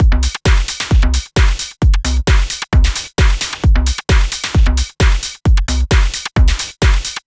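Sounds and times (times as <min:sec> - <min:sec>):
dance beat loop: 0:00.0 - 0:07.2.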